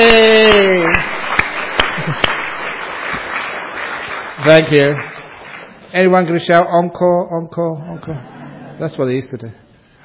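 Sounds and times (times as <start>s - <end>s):
speech: 0.0s - 0.4s, 4.5s - 5.1s, 5.9s - 10.0s
scattered audience claps: 0.0s - 5.9s.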